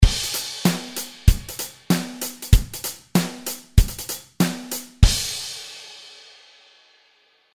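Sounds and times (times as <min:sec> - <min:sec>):
hi-hat edge ghost notes: 0:00.0 - 0:06.0.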